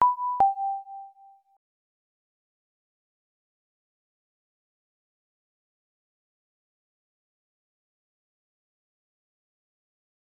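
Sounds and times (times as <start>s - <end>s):
phone tone: 0.0s - 1.3s.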